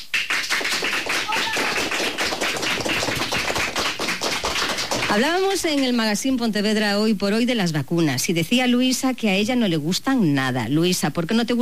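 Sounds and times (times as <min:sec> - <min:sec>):
group of schoolchildren applauding in studio: 0:00.0 - 0:05.3
speech: 0:05.1 - 0:11.5.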